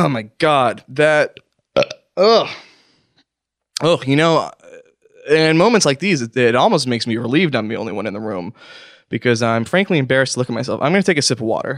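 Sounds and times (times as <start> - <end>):
speech: 0.0 - 2.7, 3.8 - 4.6, 5.3 - 11.7
loud drawn-out burp: 1.8 - 2.7, 3.8 - 5.5
short breathy vocal sound: 2.2 - 2.8, 8.5 - 9.1.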